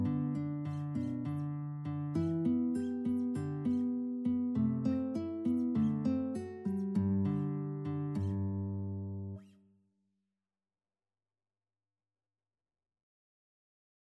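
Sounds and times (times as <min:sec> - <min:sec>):
guitar playing in a violin-guitar duet: 0:00.0 - 0:09.6.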